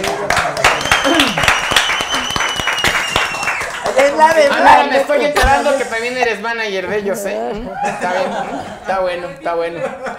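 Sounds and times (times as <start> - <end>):
audience applause: 0.0 - 4.7
whoops and voices: 0.9 - 3.6
speech: 4.2 - 10.1
laughter: 7.6 - 10.1.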